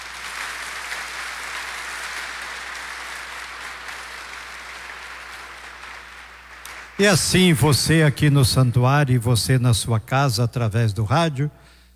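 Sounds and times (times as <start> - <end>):
applause: 0.0 - 8.0
speech: 7.0 - 11.7.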